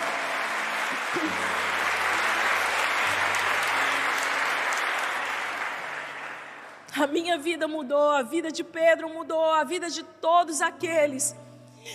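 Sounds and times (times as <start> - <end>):
audience applause: 0.0 - 6.8
speech: 1.2 - 1.7, 7.0 - 11.9.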